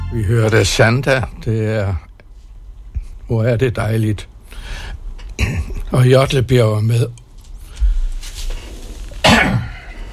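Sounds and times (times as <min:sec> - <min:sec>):
speech: 0:00.1 - 0:02.1, 0:03.3 - 0:07.2
person coughing: 0:05.4 - 0:05.9, 0:09.2 - 0:10.0
person with a scratchy throat clearing it: 0:05.4 - 0:05.9, 0:09.2 - 0:10.0.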